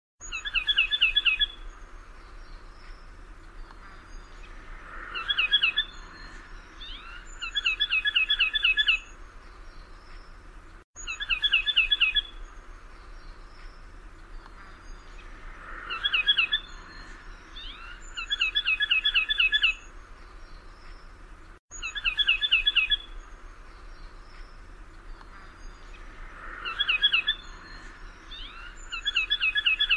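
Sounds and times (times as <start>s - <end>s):
bird chirping: 0.2s - 29.9s.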